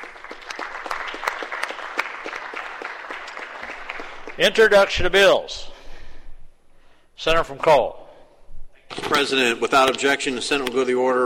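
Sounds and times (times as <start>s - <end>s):
applause from the floor of a state Senate chamber welcoming guests: 0.0s - 4.9s
speech: 4.4s - 5.7s, 7.2s - 8.0s, 9.0s - 11.2s.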